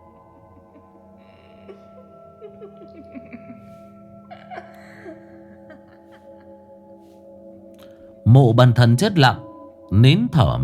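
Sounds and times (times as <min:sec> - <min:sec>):
eerie ghostly laughter at night: 0:00.0 - 0:07.0
low hum and tonal drone: 0:00.0 - 0:10.6
speech: 0:02.6 - 0:03.8, 0:08.3 - 0:10.6.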